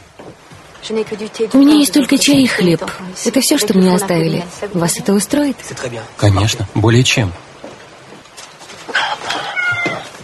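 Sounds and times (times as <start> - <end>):
speech: 0.2 - 7.4
cat meowing: 8.9 - 10.2.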